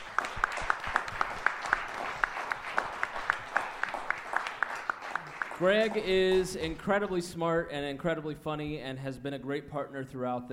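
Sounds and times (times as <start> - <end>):
audience applause: 0.0 - 7.0
speech: 5.6 - 10.5.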